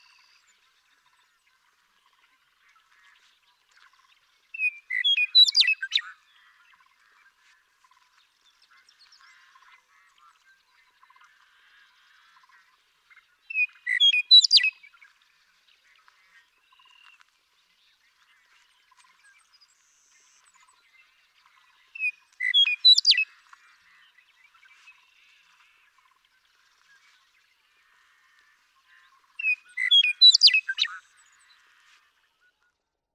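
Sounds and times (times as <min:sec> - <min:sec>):
western meadowlark singing: 0:04.6 - 0:06.0, 0:13.5 - 0:14.9, 0:21.6 - 0:23.3, 0:28.9 - 0:31.6.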